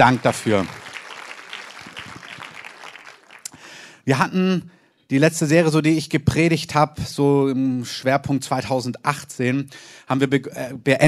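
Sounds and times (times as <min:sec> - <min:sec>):
speech: 0:00.0 - 0:00.8, 0:04.0 - 0:11.0
audience applause: 0:00.0 - 0:03.8.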